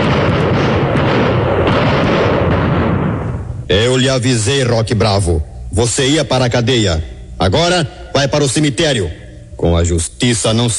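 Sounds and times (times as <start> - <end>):
gunfire sound effects: 0.0 - 3.4
speech: 3.7 - 10.7.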